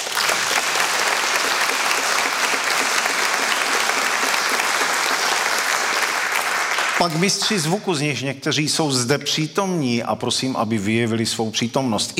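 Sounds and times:
audience applause: 0.0 - 7.4
speech: 7.0 - 12.1.

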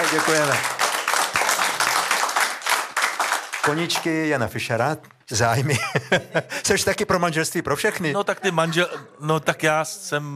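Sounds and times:
audience clapping in agreement with a call to support marriage for all: 0.0 - 4.7
speech: 0.1 - 0.8, 3.6 - 10.3
laughter: 5.5 - 6.9, 7.9 - 9.3.

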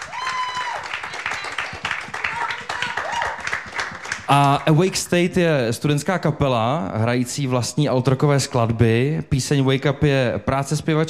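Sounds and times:
audience applause: 0.0 - 5.1
speech: 4.3 - 11.0.

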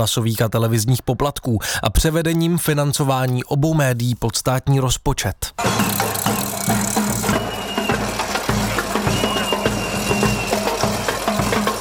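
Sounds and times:
speech: 0.0 - 6.5
protest march drums: 5.6 - 11.7.

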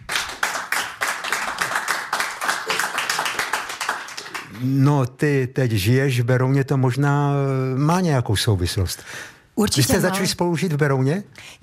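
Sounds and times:
audience clapping: 0.0 - 4.9
speech: 4.6 - 11.6.

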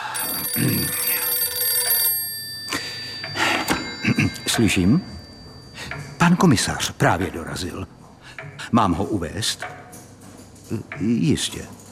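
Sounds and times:
telephone bell ringing: 0.0 - 6.4
speech: 0.6 - 1.1, 4.6 - 5.2, 6.3 - 8.0, 8.7 - 9.8, 10.7 - 11.8.

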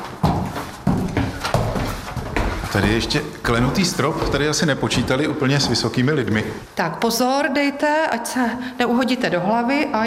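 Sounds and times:
footsteps on old wooden stairs in the Tišnov museum: 0.0 - 6.7
speech: 2.8 - 10.0.

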